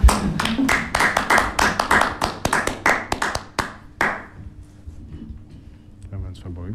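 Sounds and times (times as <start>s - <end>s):
hands clapping: 0.0s - 4.4s.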